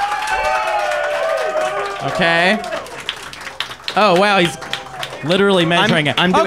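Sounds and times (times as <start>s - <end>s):
whoops and shouts: 0.0s - 3.1s
crowd clapping: 0.0s - 6.4s
speech: 2.0s - 2.8s, 4.0s - 6.4s.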